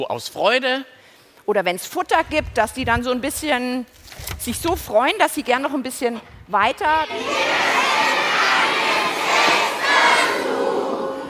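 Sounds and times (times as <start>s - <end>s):
speech: 0.0s - 7.6s
crowd of 500 people shouting: 7.1s - 11.2s.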